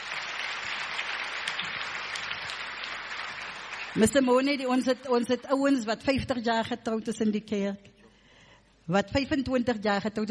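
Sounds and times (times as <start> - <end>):
audience clapping hands: 0.0 - 4.3
speech: 4.0 - 7.9, 8.9 - 10.2.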